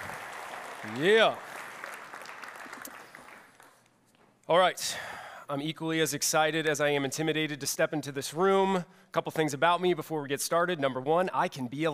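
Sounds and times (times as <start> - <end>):
faint audience applause welcoming a speaker: 0.0 - 3.9
speech: 0.8 - 1.5, 4.5 - 11.9.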